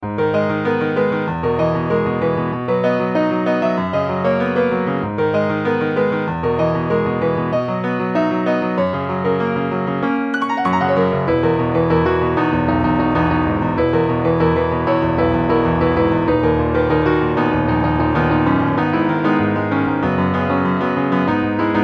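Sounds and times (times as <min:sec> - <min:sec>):
piano: 0:00.0 - 0:21.8.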